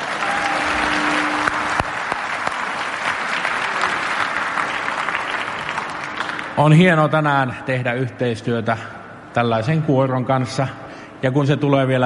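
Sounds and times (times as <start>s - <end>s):
audience applause for a choir: 0.0s - 6.6s
speech: 6.6s - 12.0s.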